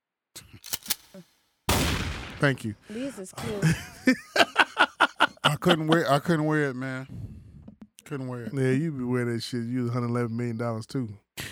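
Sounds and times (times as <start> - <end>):
speech: 0.4 - 1.3, 2.4 - 4.5, 5.6 - 7.2, 8.1 - 11.2
gunshot sound effect: 1.7 - 2.8
laughter: 3.4 - 6.5.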